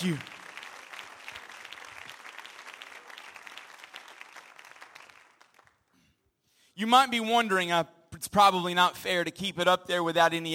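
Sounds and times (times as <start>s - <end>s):
speech: 0.0s - 0.3s, 6.8s - 10.5s
audience clapping: 0.0s - 6.0s.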